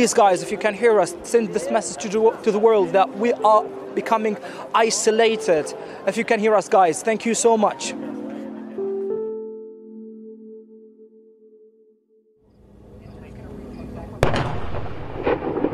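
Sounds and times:
speech: 0:00.0 - 0:08.2
bombing explosions: 0:14.2 - 0:15.7.

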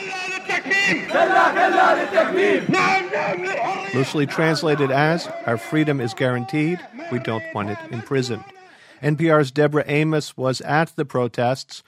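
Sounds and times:
protesters chanting at a street protest: 0:00.0 - 0:05.7
speech: 0:00.9 - 0:11.8.

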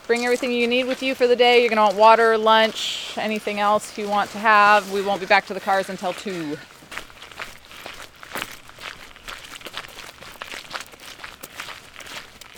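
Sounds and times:
footsteps walking on a trail: 0:00.0 - 0:12.5
speech: 0:00.1 - 0:06.7.

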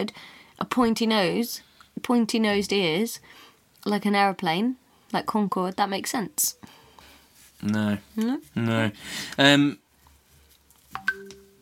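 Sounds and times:
speech: 0:00.0 - 0:06.8, 0:07.6 - 0:09.8
WhatsApp message notification on phone: 0:11.0 - 0:11.5.

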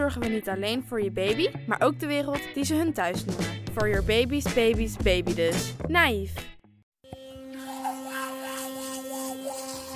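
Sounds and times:
speech: 0:00.1 - 0:06.5
electric toothbrush humming while brushing teeth: 0:07.1 - 0:09.9.

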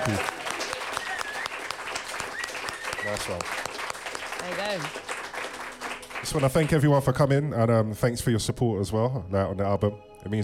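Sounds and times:
speech: 0:00.0 - 0:00.4, 0:03.1 - 0:03.7, 0:04.4 - 0:05.1, 0:06.2 - 0:10.4
audience applause: 0:00.0 - 0:07.0.

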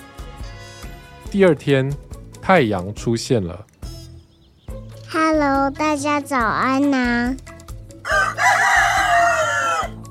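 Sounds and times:
speech: 0:01.3 - 0:03.7, 0:05.2 - 0:07.5
chickens crowing loudly: 0:08.0 - 0:10.0.

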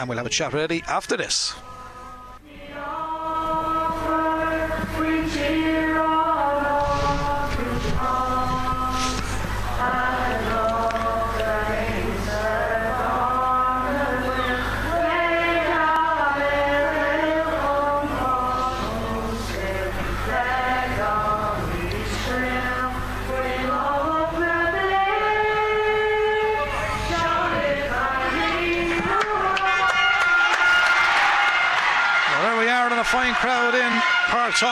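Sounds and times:
speech: 0:00.0 - 0:01.7, 0:33.1 - 0:34.7
low hum: 0:00.0 - 0:34.7
national anthem played by brass band at stadium: 0:29.1 - 0:34.7.

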